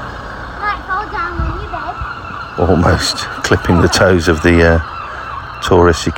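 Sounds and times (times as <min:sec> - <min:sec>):
Land Rover driving through narrow street: 0:00.0 - 0:06.1
speech: 0:02.6 - 0:05.0, 0:05.6 - 0:06.1.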